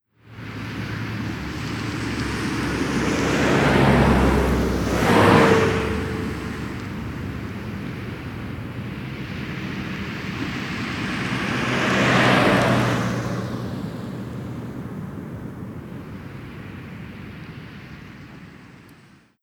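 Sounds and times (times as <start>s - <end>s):
Las Vegas traffic: 0.2s - 19.1s.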